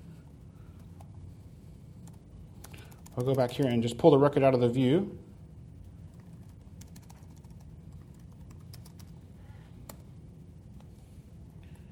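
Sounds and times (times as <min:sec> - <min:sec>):
SQL being typed on a computer keyboard: 0:02.0 - 0:03.7, 0:06.1 - 0:09.2
speech: 0:03.2 - 0:05.2.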